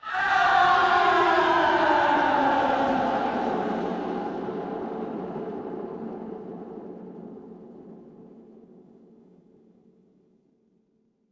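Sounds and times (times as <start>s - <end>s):
crowd cheering: 0.0s - 6.8s.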